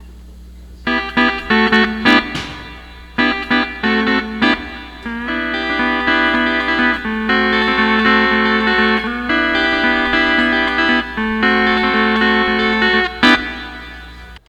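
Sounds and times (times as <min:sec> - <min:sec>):
12-string lap guitar playing: 0:00.9 - 0:14.4.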